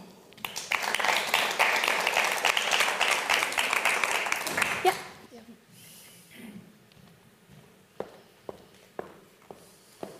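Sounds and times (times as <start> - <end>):
audience applause: 0.4 - 5.2.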